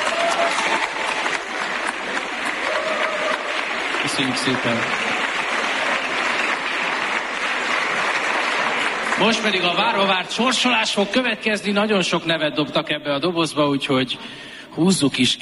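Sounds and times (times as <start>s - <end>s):
audience applause: 0.0s - 10.8s
speech: 4.1s - 5.1s, 9.2s - 15.4s.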